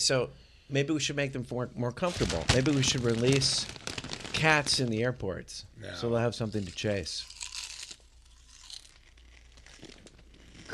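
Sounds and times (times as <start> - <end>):
speech: 0.0 - 7.4
crunching barbecue-flavored potato chips: 2.1 - 5.0, 6.2 - 10.7.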